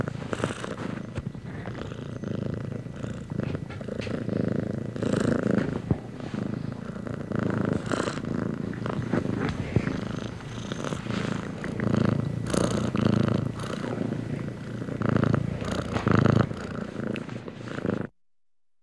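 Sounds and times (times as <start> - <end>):
domestic cat purring: 0.0 - 18.2.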